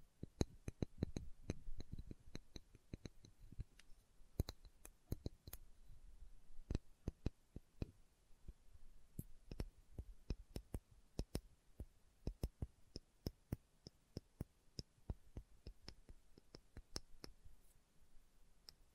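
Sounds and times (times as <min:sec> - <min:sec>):
slow tapping: 0:00.2 - 0:05.6, 0:09.2 - 0:17.4.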